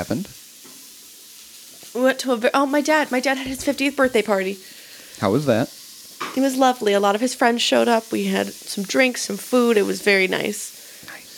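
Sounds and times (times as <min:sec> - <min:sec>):
two people chatting: 0:00.0 - 0:00.3, 0:02.0 - 0:04.6, 0:05.2 - 0:05.7, 0:06.3 - 0:11.3
speech: 0:00.0 - 0:00.4, 0:02.0 - 0:05.7, 0:06.4 - 0:10.7
chorizo sizzling in a frying pan: 0:00.0 - 0:11.3.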